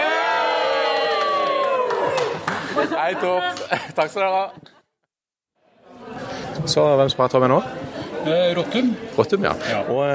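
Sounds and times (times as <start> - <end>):
crowd cheering: 0.0 - 3.1
speech: 2.8 - 4.7, 6.6 - 10.1.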